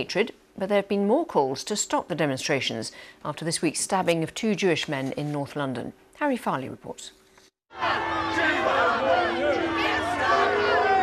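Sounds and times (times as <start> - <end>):
speech: 0.0 - 8.1
crowd booing and heckling: 7.7 - 11.0.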